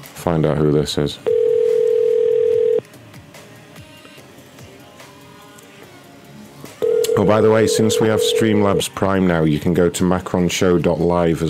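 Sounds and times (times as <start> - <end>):
speech: 0.2 - 1.4, 7.2 - 11.4
telephone dial tone from a short voicemail recording: 1.3 - 2.8, 6.8 - 8.8.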